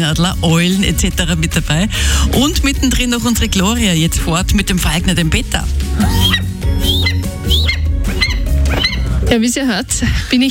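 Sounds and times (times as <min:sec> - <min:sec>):
speech: 0:00.0 - 0:06.9, 0:09.3 - 0:10.4
ferruginous hawk calling: 0:06.0 - 0:09.2.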